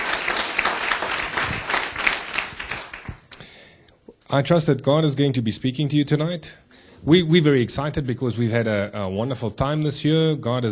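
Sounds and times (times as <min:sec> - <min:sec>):
church congregation applauding after worship: 0:00.0 - 0:03.3
speech: 0:04.3 - 0:10.6.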